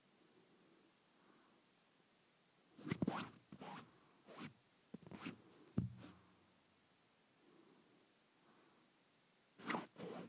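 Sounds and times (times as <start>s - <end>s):
fabric being handled rustling and brushing: 2.8s - 6.2s, 9.6s - 10.2s.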